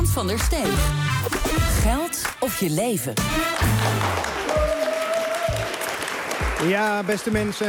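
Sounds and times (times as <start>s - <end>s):
speech: 0.2s - 1.2s, 1.8s - 4.4s, 6.6s - 7.6s
live studio audience applause: 3.5s - 7.6s.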